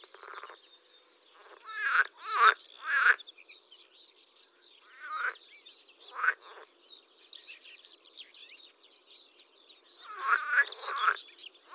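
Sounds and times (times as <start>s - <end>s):
water frog chorus croaking: 0.0s - 3.4s, 4.8s - 6.8s, 10.0s - 11.7s.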